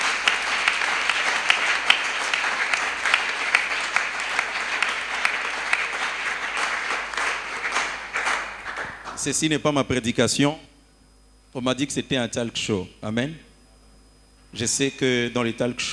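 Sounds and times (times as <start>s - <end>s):
church congregation applauding at a youth gathering: 0.0s - 9.5s
speech: 9.2s - 10.7s, 11.6s - 13.5s, 14.5s - 15.9s.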